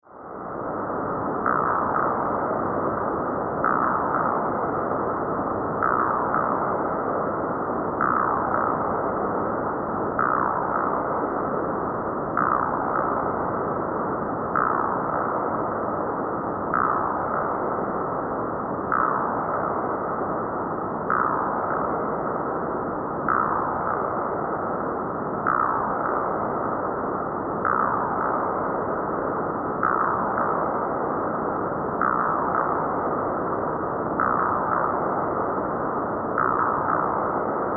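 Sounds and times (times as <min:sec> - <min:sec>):
science fiction alien jungle insects: 0:00.0 - 0:37.7.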